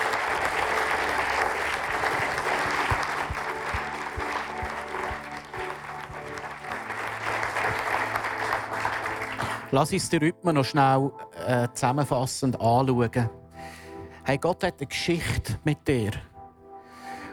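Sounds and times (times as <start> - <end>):
audience applause: 0.0 - 9.8
speech: 9.7 - 13.4, 14.3 - 16.3.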